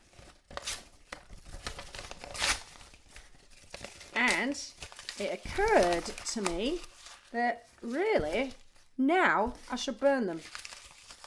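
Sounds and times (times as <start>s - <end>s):
handwritten paper notes being torn up: 0.0s - 7.4s, 10.4s - 11.2s
speech: 4.4s - 10.6s.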